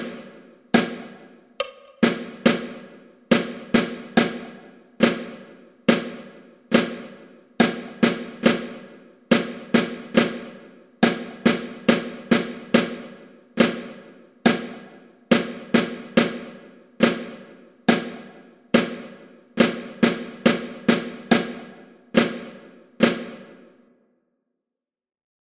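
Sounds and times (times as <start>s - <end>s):
snare drum solo: 0.0s - 23.8s.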